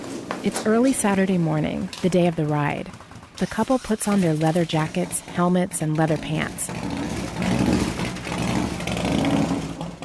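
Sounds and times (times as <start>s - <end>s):
speech: 0.4s - 7.0s
Harley-Davidson motorcycle engine rumbling backing out of a garage: 0.4s - 10.0s.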